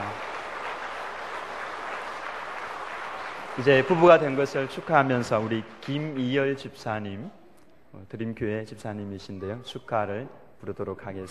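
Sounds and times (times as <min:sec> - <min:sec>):
applause: 0:00.0 - 0:06.4
speech: 0:03.6 - 0:11.2.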